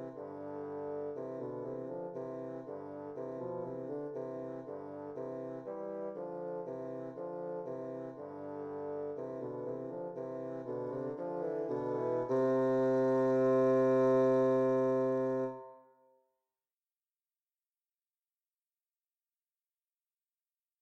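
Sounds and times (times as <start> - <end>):
rondo bassoon duet: 0.0 - 15.8.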